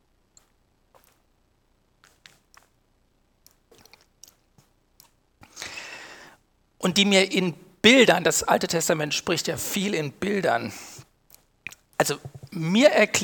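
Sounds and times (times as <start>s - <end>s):
speaker drinking something between sentences: 3.7s - 4.4s
speech: 6.8s - 11.0s, 12.0s - 13.2s.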